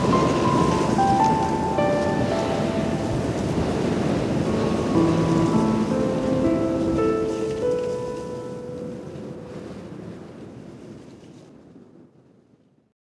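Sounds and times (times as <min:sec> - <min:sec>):
piano: 0:00.0 - 0:10.2
rain noise: 0:00.0 - 0:12.7.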